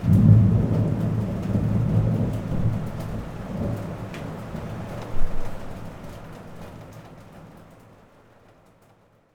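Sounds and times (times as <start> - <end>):
thunder: 0.0 - 6.0.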